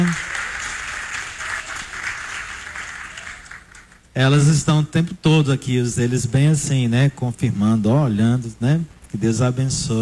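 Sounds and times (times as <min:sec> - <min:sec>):
round of applause: 0:00.0 - 0:04.1
speech: 0:04.2 - 0:10.0.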